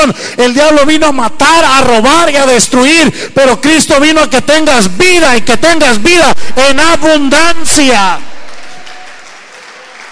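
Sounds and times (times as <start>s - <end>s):
speech: 0.0s - 8.3s
audience applause: 8.2s - 10.1s.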